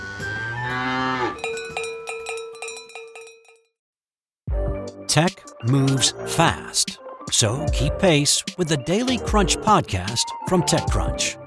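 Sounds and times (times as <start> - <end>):
cow mooing: 0.3 - 1.4
cowbell clanking: 1.3 - 3.7
speech: 5.1 - 11.4.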